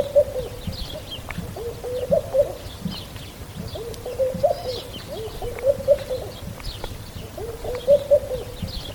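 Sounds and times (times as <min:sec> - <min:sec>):
bird calling with a low hooting coo: 0:00.0 - 0:00.8, 0:01.4 - 0:02.7, 0:03.6 - 0:06.4, 0:07.2 - 0:08.8.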